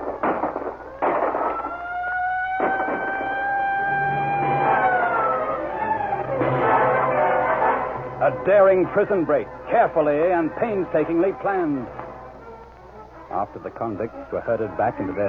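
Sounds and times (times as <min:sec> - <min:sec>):
loud sharp bangs: 0:00.0 - 0:01.9, 0:02.5 - 0:12.4
siren wailing in the night: 0:00.0 - 0:15.2
speech: 0:08.4 - 0:12.0, 0:13.4 - 0:15.2.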